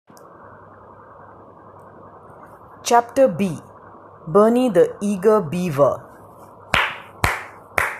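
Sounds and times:
speech: 2.9 - 6.1
loud clapping: 6.7 - 7.9.

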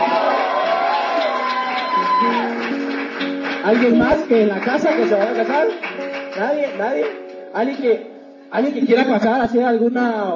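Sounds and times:
crowd cheering and whooping: 0.0 - 3.4
crowd clapping: 0.0 - 8.0
speech: 3.7 - 10.3.

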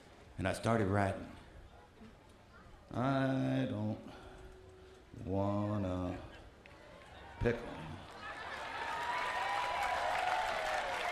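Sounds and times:
speech: 0.4 - 1.4, 2.9 - 4.2, 5.2 - 6.3, 7.4 - 8.0
audience clapping: 8.0 - 11.1.

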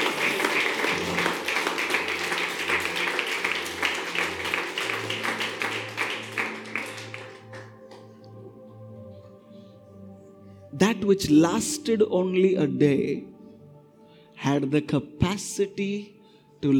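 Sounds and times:
audience clapping hands: 0.0 - 8.3
speech: 11.0 - 13.3, 14.5 - 16.7.

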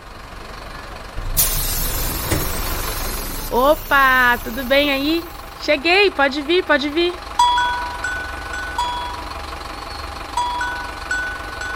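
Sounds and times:
bus engine idling: 0.0 - 11.7
speech: 3.5 - 7.2.

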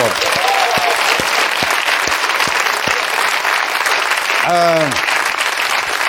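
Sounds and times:
audience applause: 0.0 - 6.0.

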